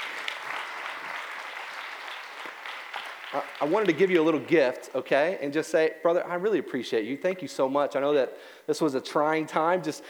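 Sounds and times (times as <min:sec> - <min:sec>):
audience applause: 0:00.0 - 0:04.2
speech: 0:03.3 - 0:10.0.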